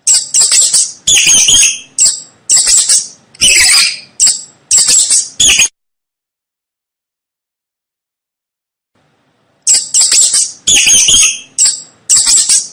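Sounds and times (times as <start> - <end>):
mouse squeaks: 0.0 - 5.7, 9.6 - 12.7.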